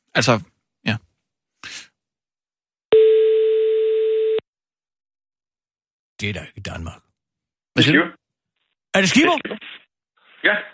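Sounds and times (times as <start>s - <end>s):
speech: 0.2s - 1.0s, 6.2s - 7.0s, 7.8s - 8.2s, 9.0s - 9.8s, 10.4s - 10.7s
telephone ringing tone while calling: 2.9s - 4.4s.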